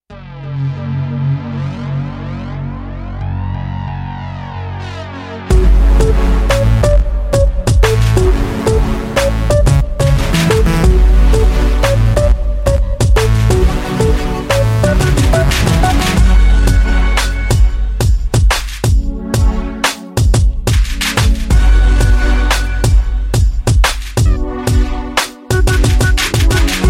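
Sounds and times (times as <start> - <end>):
step music: 0.0 - 26.8.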